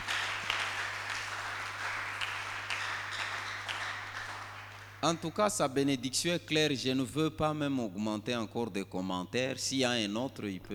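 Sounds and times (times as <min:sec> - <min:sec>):
congregation applauding during a French-language church service: 0:00.0 - 0:05.3
speech: 0:05.0 - 0:10.7.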